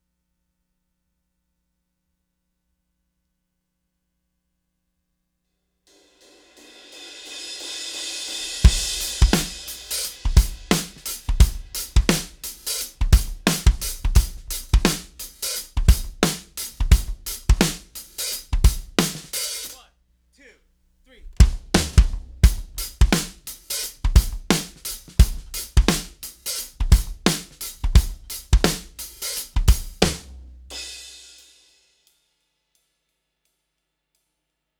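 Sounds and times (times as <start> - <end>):
live drums: 6.1 - 19.8, 21.2 - 31.6.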